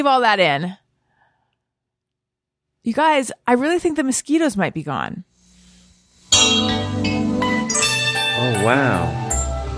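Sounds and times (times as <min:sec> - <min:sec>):
speech: 0:00.0 - 0:00.8, 0:02.8 - 0:05.3, 0:06.3 - 0:06.8, 0:08.6 - 0:09.2
chime-like keyboard sound from a YouTube window: 0:07.7 - 0:09.6.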